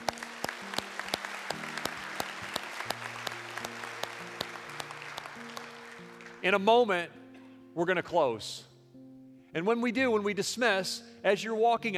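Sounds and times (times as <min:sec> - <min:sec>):
church congregation clapping: 0:00.0 - 0:06.8
speech: 0:06.4 - 0:07.2, 0:07.8 - 0:08.7, 0:09.5 - 0:11.9.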